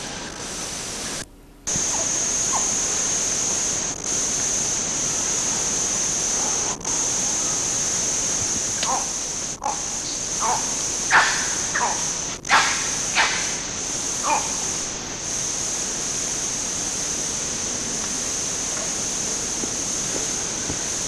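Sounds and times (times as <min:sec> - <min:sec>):
forest insects hissing: 0:00.0 - 0:21.0
red colobus monkeys giving nyaw barks: 0:01.7 - 0:03.0, 0:06.2 - 0:07.1, 0:08.7 - 0:14.9
red colobus monkeys giving thin chiss calls: 0:01.7 - 0:03.0, 0:08.7 - 0:14.9.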